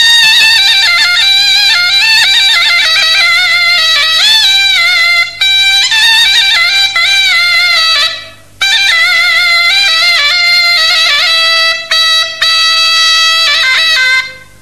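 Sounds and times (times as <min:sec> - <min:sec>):
zurna playing: 0:00.0 - 0:14.6.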